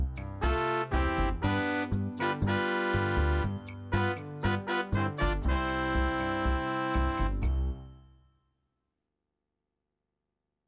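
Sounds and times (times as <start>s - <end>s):
latin music without drums: 0.0s - 8.0s.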